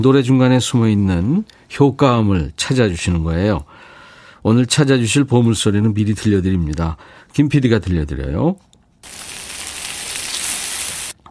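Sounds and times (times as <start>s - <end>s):
speech: 0.0s - 9.2s
meat sizzling on a grill: 9.0s - 11.2s.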